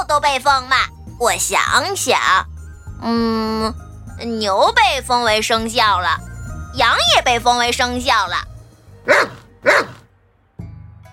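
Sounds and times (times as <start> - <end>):
speech: 0.0 - 10.0
dog barking: 9.1 - 10.1.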